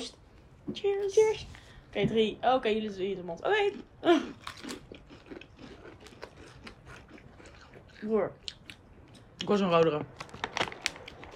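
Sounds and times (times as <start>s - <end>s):
speech: 0.0s - 4.5s, 8.0s - 8.4s, 9.4s - 10.2s
paprika potato chips being chewed: 3.6s - 11.3s.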